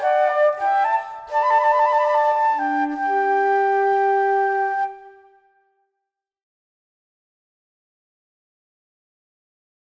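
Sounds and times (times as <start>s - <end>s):
fugue played by a duo of transverse flutes: 0.0s - 5.5s.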